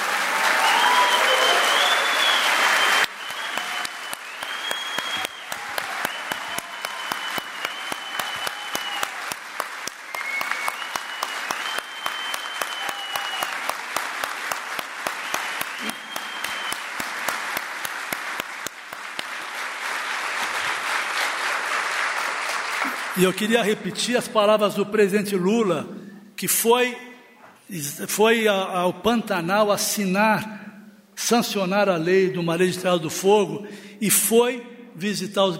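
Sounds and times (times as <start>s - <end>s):
audience applause: 0.0s - 23.8s
whistles: 0.5s - 9.3s, 10.0s - 13.8s, 15.0s - 17.1s
speech: 23.2s - 27.1s, 27.7s - 30.6s, 31.2s - 35.5s.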